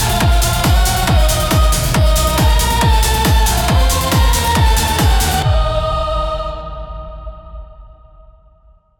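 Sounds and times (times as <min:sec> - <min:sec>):
techno music: 0:00.0 - 0:06.3.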